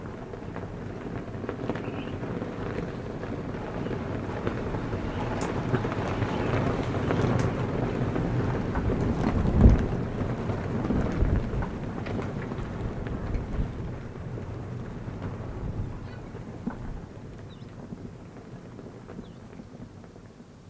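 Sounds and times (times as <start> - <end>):
prayer flags flapping: 0.0 - 20.6.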